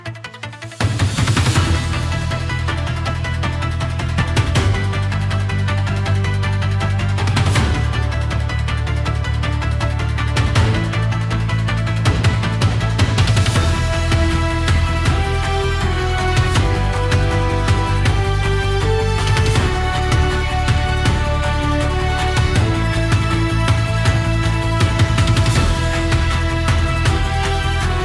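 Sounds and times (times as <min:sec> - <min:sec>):
in-game battle music: 0:00.0 - 0:28.0.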